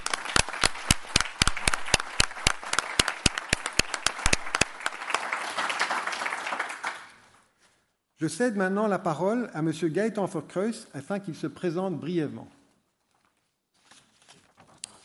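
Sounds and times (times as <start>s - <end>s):
audience applause: 0.0s - 7.2s
speech: 8.2s - 12.6s.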